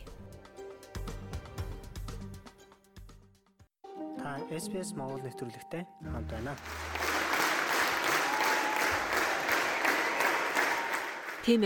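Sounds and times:
speech: 0:04.3 - 0:06.9, 0:11.4 - 0:11.6
audience applause in a Sydney theatre after Mongolian morin khuur ensemble performance: 0:06.4 - 0:11.6.

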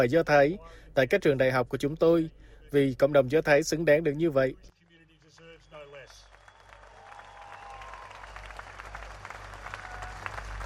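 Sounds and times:
speech: 0:00.0 - 0:04.8
applause: 0:04.7 - 0:10.6.

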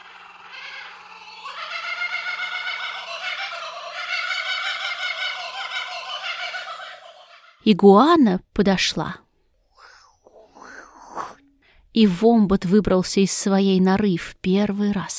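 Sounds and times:
kookaburra laughing call: 0:00.0 - 0:07.6
speech: 0:07.7 - 0:09.2, 0:12.0 - 0:15.1.

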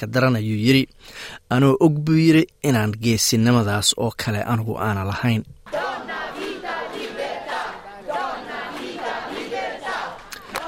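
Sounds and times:
speech: 0:00.0 - 0:05.8
protesters at a rally in Rome chanting a three-word slogan: 0:05.7 - 0:10.6.

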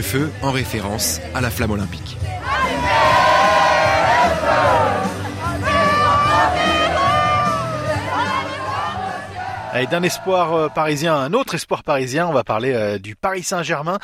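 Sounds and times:
speech: 0:00.0 - 0:03.2, 0:09.7 - 0:14.0
large crowd singing in chorus at a giant karaoke in Paris: 0:02.3 - 0:11.0.

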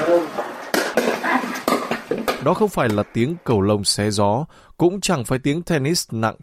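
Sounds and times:
pickleball struck by paddles: 0:00.6 - 0:03.1
speech: 0:02.4 - 0:06.4.

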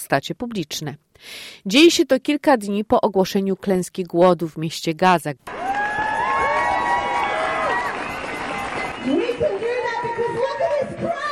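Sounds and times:
speech: 0:00.1 - 0:05.7
protest crowd in the street: 0:05.5 - 0:09.2
shrill calls: 0:05.5 - 0:10.0
people shouting and cheering: 0:05.5 - 0:11.3.

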